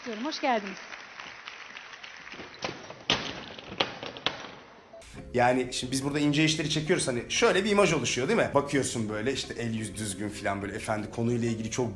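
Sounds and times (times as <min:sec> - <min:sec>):
speech: 0:00.0 - 0:01.0, 0:05.3 - 0:11.9
applause: 0:00.0 - 0:02.7.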